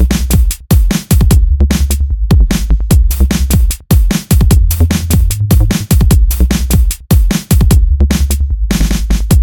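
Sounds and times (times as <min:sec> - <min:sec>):
psy music with bass: 0:00.0 - 0:00.4, 0:01.3 - 0:03.8, 0:04.5 - 0:06.9, 0:07.7 - 0:09.3.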